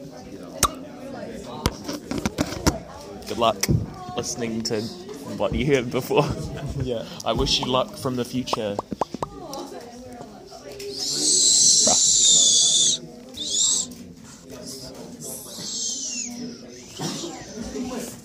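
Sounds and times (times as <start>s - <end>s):
low voices murmuring: 0.0s - 18.2s
speech: 3.4s - 9.1s
person whistling: 11.0s - 13.9s, 15.6s - 17.6s.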